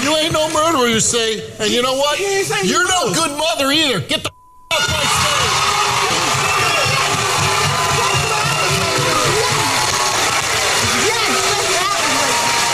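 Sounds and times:
speech: 0:00.2 - 0:04.3
talk show studio audience booing and jeering: 0:04.7 - 0:12.7.

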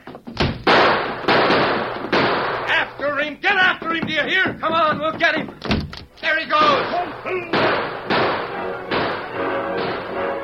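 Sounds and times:
gunshots: 0:00.5 - 0:03.0, 0:06.5 - 0:10.2
speech: 0:03.9 - 0:05.6, 0:06.2 - 0:07.9.

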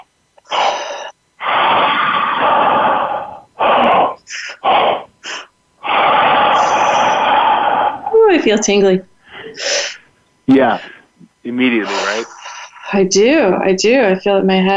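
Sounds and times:
deep belly breathing: 0:00.4 - 0:08.6, 0:09.2 - 0:10.1, 0:10.7 - 0:12.9
speech: 0:08.4 - 0:09.8, 0:10.5 - 0:10.9, 0:11.5 - 0:12.3, 0:12.9 - 0:14.7.

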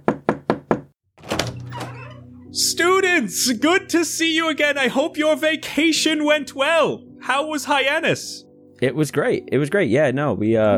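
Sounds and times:
knocking on an office door: 0:00.0 - 0:01.0
speech: 0:02.5 - 0:10.7.

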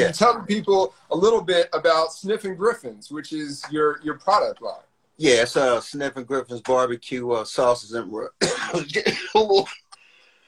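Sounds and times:
speech: 0:00.0 - 0:09.8
person coughing after a drink went down the wrong pipe: 0:08.4 - 0:10.0.

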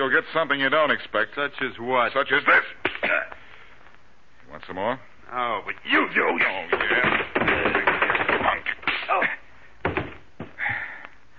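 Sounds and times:
speech: 0:00.0 - 0:02.8, 0:04.6 - 0:07.9
punches knocking a man out: 0:06.4 - 0:10.6.

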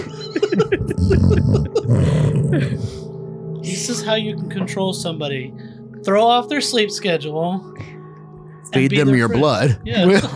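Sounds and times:
laughter: 0:00.0 - 0:02.9, 0:08.8 - 0:10.3
speech: 0:00.6 - 0:01.6, 0:03.9 - 0:07.9, 0:08.7 - 0:10.3
person fake snoring: 0:01.0 - 0:03.0.

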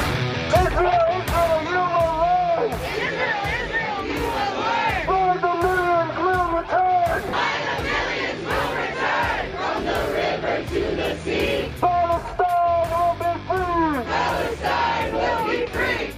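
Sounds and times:
protest crowd chanting and yelling: 0:00.0 - 0:16.1.

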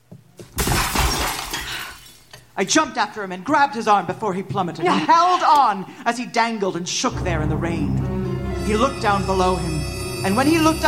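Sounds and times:
window glass pane smashing: 0:00.6 - 0:02.4
speech: 0:02.6 - 0:08.1, 0:08.7 - 0:10.8
laughter: 0:04.6 - 0:05.8.

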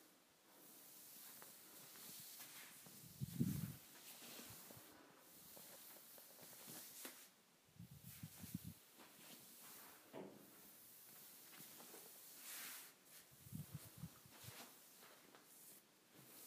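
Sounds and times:
wiping and scrubbing kitchen appliances: 0:00.6 - 0:07.3, 0:08.0 - 0:16.4.

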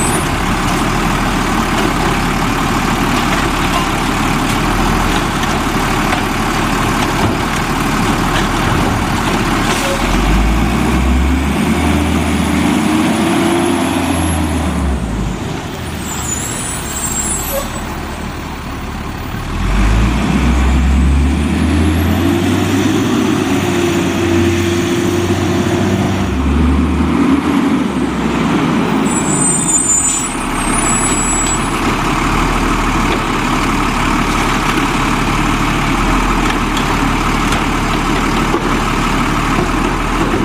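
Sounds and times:
garbage truck engine rumbling and revving: 0:00.0 - 0:40.4
high hissing squeals from garbage truck: 0:16.0 - 0:17.9.

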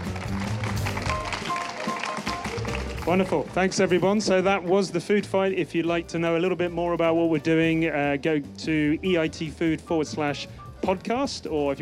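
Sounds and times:
audience applause for panelists: 0:00.0 - 0:03.8
speech: 0:03.1 - 0:11.8.

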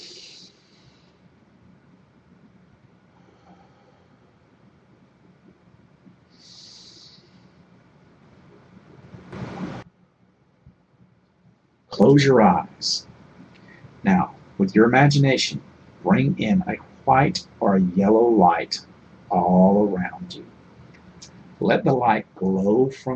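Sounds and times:
slow breathing in through nose and out through mouth: 0:00.0 - 0:01.3, 0:03.1 - 0:04.4, 0:06.3 - 0:07.6
speech: 0:12.0 - 0:13.1, 0:14.7 - 0:20.5, 0:21.6 - 0:23.1.

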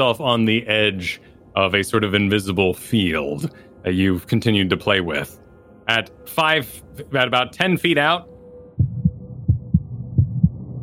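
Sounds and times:
speech: 0:00.0 - 0:08.9
low heartbeat sound effect: 0:08.8 - 0:10.8.

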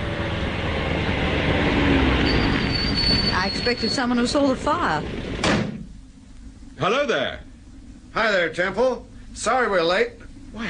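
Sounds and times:
car approaching: 0:00.0 - 0:05.4
speech: 0:03.6 - 0:05.2, 0:06.8 - 0:07.5, 0:08.2 - 0:10.6.

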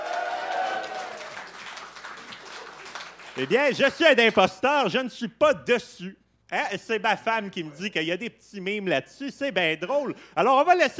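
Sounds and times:
audience applause: 0:00.0 - 0:03.9
speech: 0:03.4 - 0:10.9.

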